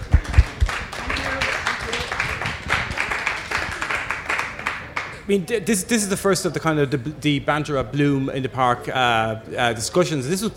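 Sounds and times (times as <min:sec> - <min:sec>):
room full of people clapping: 0:00.0 - 0:05.3
speech: 0:05.3 - 0:10.5.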